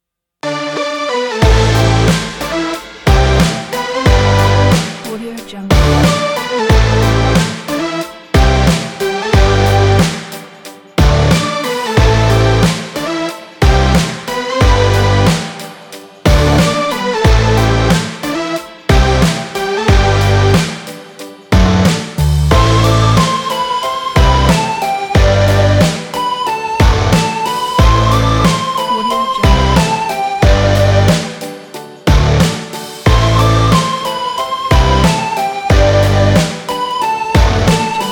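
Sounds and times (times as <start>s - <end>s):
upbeat indie music: 0.5s - 38.1s.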